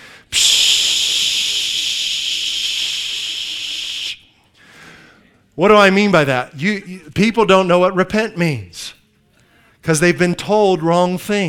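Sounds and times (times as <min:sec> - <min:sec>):
people imitating aerosol spray can hissing: 0:00.3 - 0:04.2
speech: 0:05.6 - 0:08.8, 0:09.8 - 0:11.4.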